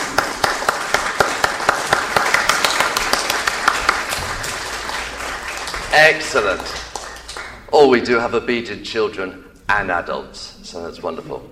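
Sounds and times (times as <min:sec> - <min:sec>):
crowd applause: 0:00.0 - 0:07.7
speech: 0:05.9 - 0:06.9, 0:07.7 - 0:11.4.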